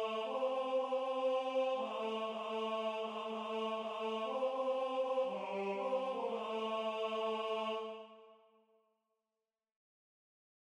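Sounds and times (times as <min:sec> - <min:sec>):
tenor singing a religious folk song: 0:00.0 - 0:08.0.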